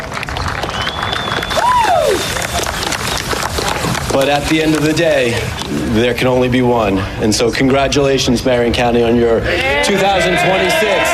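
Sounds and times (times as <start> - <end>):
crowd applauding and cheering: 0.0 - 6.0, 9.6 - 11.1
thin high whistle: 0.7 - 3.4
person whooping: 1.3 - 3.0
speech: 4.2 - 11.1.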